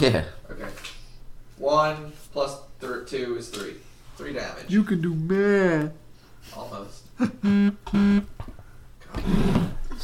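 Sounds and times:
speech: 0.0s - 0.4s, 1.6s - 8.3s, 9.1s - 9.7s
mobile phone vibrating: 7.4s - 8.4s.

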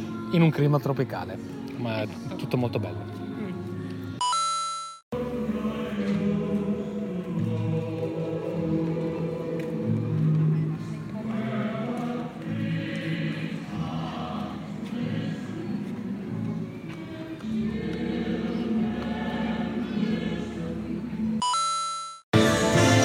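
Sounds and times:
Christmas songs playing at outdoor light show: 0.0s - 23.0s
speech: 0.3s - 3.3s
crowd murmuring: 6.0s - 21.4s.

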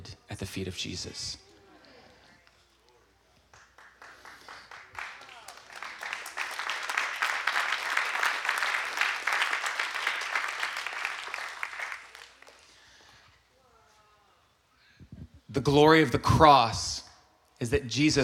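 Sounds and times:
speech: 0.4s - 1.4s, 15.6s - 16.9s, 17.6s - 18.2s
audience applause: 3.5s - 12.9s.

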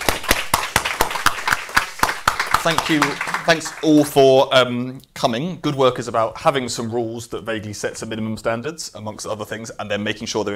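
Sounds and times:
audience applause: 0.0s - 4.2s
speech: 2.6s - 10.5s.

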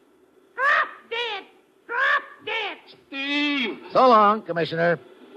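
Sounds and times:
parrot squawking: 0.6s - 3.0s
speech: 3.9s - 5.1s.

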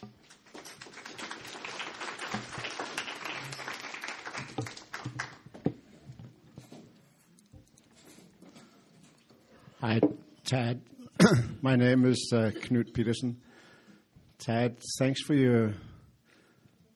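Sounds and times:
audience applause welcoming a speaker: 0.3s - 5.5s
speech: 9.8s - 13.5s, 14.4s - 15.9s.

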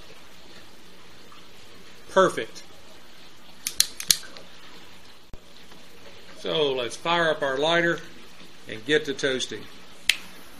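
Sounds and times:
speech: 2.2s - 2.7s, 6.4s - 8.1s, 8.7s - 9.8s
cigar being cut with a Cigarism V cutter: 3.6s - 4.3s.

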